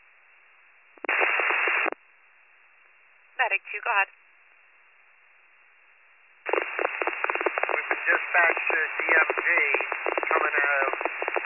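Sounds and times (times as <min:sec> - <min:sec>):
radio static: 0:01.0 - 0:02.0, 0:06.5 - 0:11.4
speech: 0:03.4 - 0:04.2, 0:08.1 - 0:11.1.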